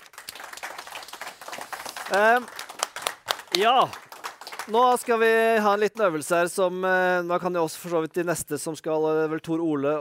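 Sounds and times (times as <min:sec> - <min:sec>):
audience applause: 0:00.0 - 0:05.6
speech: 0:02.1 - 0:02.6, 0:03.6 - 0:04.0, 0:04.7 - 0:10.0.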